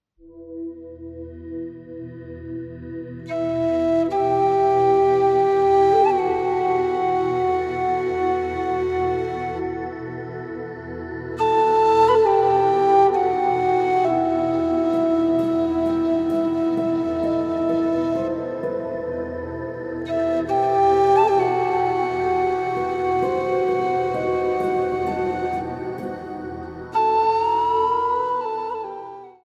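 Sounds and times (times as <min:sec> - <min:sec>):
instrumental music: 0:01.0 - 0:29.4.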